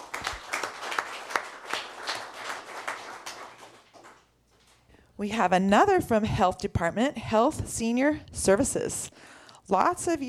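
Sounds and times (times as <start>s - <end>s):
audience applause: 0.0s - 4.2s
speech: 5.2s - 10.2s.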